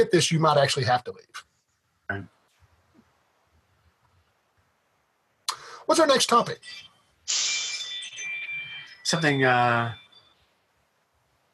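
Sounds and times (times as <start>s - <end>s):
speech: 0.0s - 1.5s, 2.1s - 2.3s, 5.9s - 7.4s, 9.1s - 10.0s
Ring doorbell motion detector alert: 7.6s - 10.4s.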